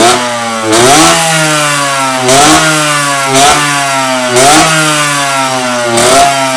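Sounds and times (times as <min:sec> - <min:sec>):
TCR twin engine revving through exhaust pipe: 0:00.0 - 0:06.5.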